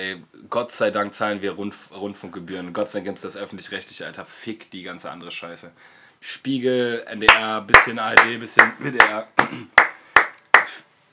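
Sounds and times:
speech: 0.0s - 9.9s
sharp loud claps from outside: 7.3s - 10.8s.

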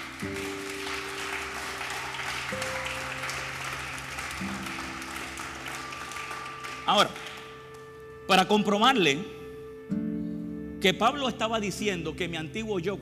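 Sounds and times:
audience clapping: 0.0s - 8.1s
speech: 6.9s - 7.3s, 8.3s - 10.0s, 10.8s - 13.0s.

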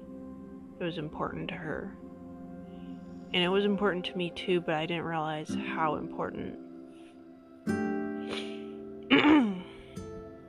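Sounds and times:
speech: 0.8s - 2.1s, 3.3s - 6.6s
throat clearing: 8.3s - 9.8s.

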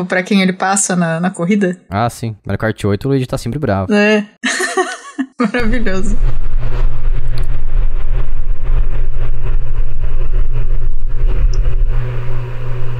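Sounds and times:
speech: 0.0s - 4.6s, 5.4s - 6.8s
laughter: 4.4s - 5.6s
loud electric fan: 5.6s - 12.9s.

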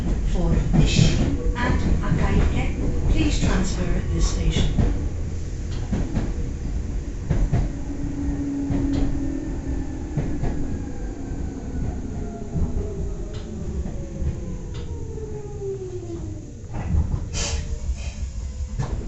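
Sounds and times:
Meitetsu Toyota Line train wheels and motor rumbling: 0.0s - 19.0s
brief voices: 0.2s - 5.0s.

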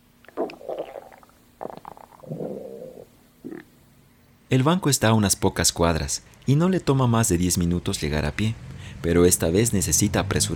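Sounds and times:
stomach growling: 0.2s - 3.7s
speech: 4.5s - 10.5s.

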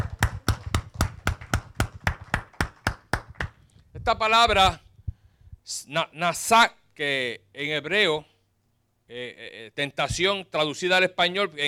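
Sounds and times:
audience applause: 0.0s - 3.5s
speech: 4.1s - 4.8s, 5.7s - 8.3s, 9.1s - 11.6s.

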